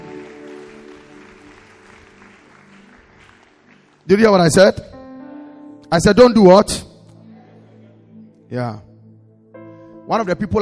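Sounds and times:
audience clapping: 0.0 - 4.6
speech: 4.1 - 4.9, 5.9 - 6.9, 8.5 - 8.9, 10.1 - 10.6.

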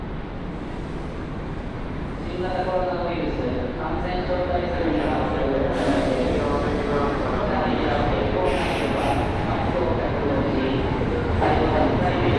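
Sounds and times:
train rumble on a railway journey: 0.0 - 12.3
sharp hisses: 8.5 - 9.3.

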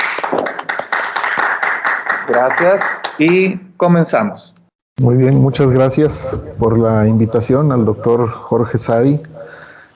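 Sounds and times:
audience applause: 0.0 - 3.4
speech: 2.3 - 9.4.

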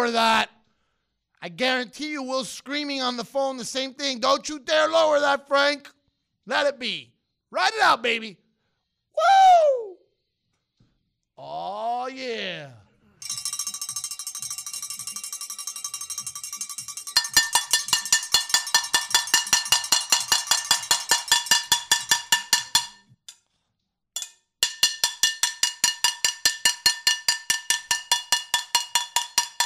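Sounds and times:
speech: 1.4 - 8.4, 9.2 - 9.8, 11.4 - 12.8
pots and pans banging in parade: 13.2 - 23.0, 24.6 - 29.6.

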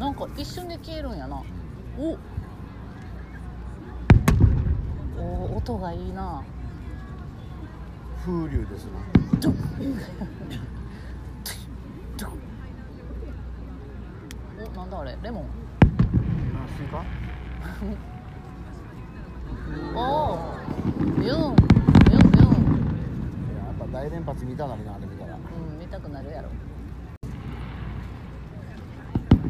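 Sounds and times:
crowd murmur at a fireworks festival: 0.0 - 29.4
fireworks at a fireworks festival: 4.0 - 7.2, 9.0 - 10.2, 15.8 - 19.1, 20.2 - 25.5, 27.2 - 29.4.

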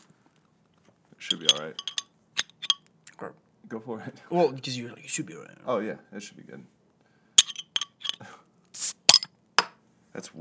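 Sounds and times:
speech: 1.2 - 2.0, 3.2 - 6.8, 10.2 - 10.4
glass fifth of Tito's vodka being opened: 1.3 - 2.8, 7.4 - 8.2, 8.8 - 9.7.

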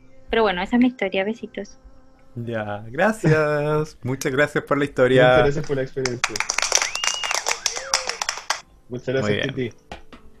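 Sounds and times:
speech: 0.3 - 6.6, 8.9 - 9.8
vocal whoops: 2.4 - 5.6, 6.4 - 8.6, 9.2 - 9.6
laughter: 2.4 - 8.6, 9.2 - 9.6
small group applauding: 5.1 - 8.6.

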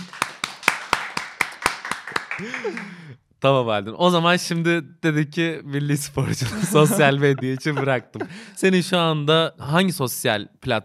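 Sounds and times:
hands clapping: 0.0 - 3.0
speech: 2.4 - 10.8
laughter: 6.2 - 8.8
person calling out: 6.8 - 8.4.

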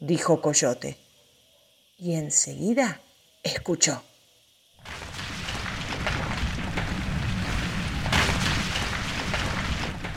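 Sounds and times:
speech: 0.0 - 1.0, 2.0 - 4.1
large stone starting to move, rumbling: 4.8 - 10.1.

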